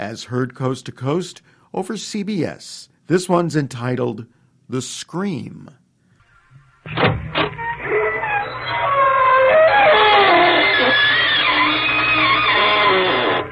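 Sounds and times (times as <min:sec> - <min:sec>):
speech: 0:00.0 - 0:05.8, 0:06.9 - 0:07.3
creaking door: 0:06.2 - 0:13.5.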